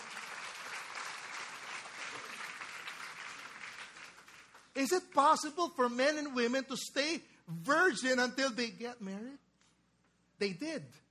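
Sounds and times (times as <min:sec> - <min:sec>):
large audience clapping as a clap offering: 0:00.0 - 0:05.1
speech: 0:04.8 - 0:09.4, 0:10.4 - 0:11.0.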